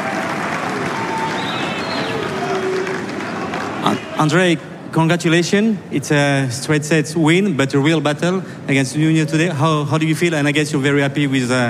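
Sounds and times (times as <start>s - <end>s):
crowd applause: 0.0s - 4.3s
speech: 3.8s - 11.6s.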